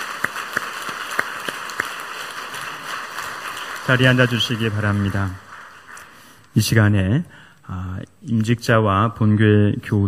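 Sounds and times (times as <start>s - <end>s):
audience applause: 0.0s - 6.4s
speech: 3.9s - 5.4s, 6.6s - 10.0s.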